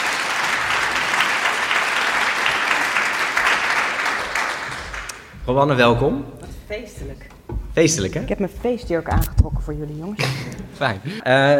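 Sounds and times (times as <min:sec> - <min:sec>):
audience applause: 0:00.0 - 0:05.3
speech: 0:05.5 - 0:11.5
laughter: 0:10.2 - 0:11.5.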